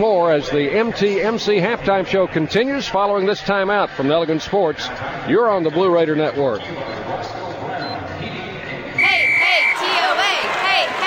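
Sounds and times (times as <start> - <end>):
speech: 0.0 - 7.0
crowd cheering: 9.0 - 11.0.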